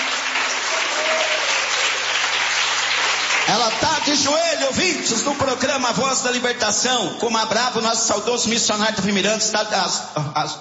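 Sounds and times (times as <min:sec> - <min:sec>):
hands clapping: 0:00.0 - 0:05.6
speech: 0:03.5 - 0:10.5.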